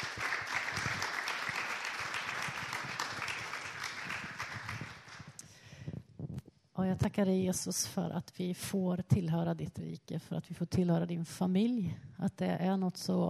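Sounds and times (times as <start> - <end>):
audience applause: 0.0 - 5.3
speech: 6.8 - 13.2.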